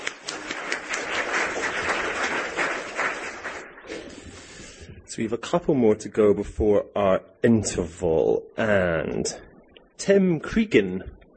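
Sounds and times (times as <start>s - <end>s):
audience applause: 0.0s - 4.2s
speech: 5.2s - 11.2s.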